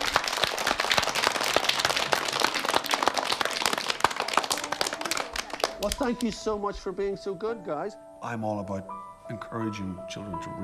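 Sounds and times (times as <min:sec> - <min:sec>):
crowd applauding: 0:00.0 - 0:06.4
speech: 0:05.8 - 0:10.6.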